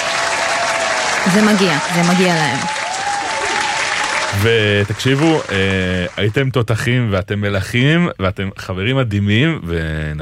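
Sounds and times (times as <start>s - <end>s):
audience applause: 0.0s - 6.6s
speech: 1.2s - 2.8s, 4.3s - 10.1s.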